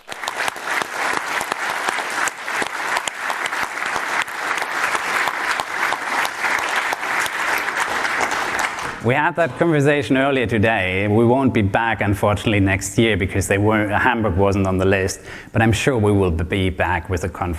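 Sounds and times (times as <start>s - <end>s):
audience applause: 0.0s - 9.3s
speech: 9.0s - 17.5s.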